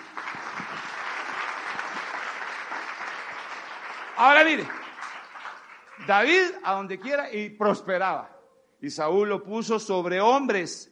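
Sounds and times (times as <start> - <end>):
audience applause: 0.0 - 7.2
speech: 4.2 - 4.8, 6.1 - 10.9.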